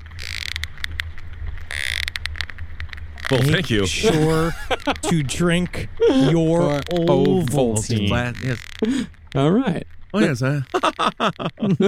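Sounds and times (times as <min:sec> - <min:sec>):
sperm whale echolocation clicks: 0:00.0 - 0:03.4, 0:08.3 - 0:10.8
laughter: 0:03.3 - 0:09.1, 0:10.2 - 0:11.8
speech: 0:03.3 - 0:11.8.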